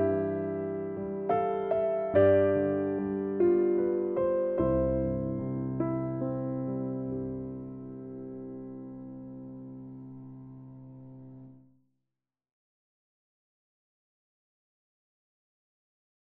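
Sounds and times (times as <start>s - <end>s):
solo piano sample: 0.0s - 11.7s.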